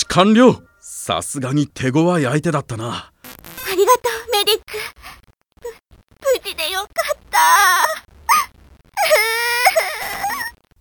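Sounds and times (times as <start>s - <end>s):
speech: 0.2s - 3.1s, 3.8s - 5.0s, 6.2s - 8.0s
person crying in a tense medical scene: 6.9s - 10.6s.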